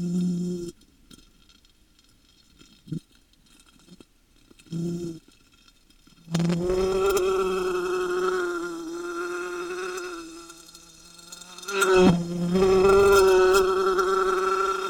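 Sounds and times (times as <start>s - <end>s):
wasp buzzing: 6.3s - 14.8s.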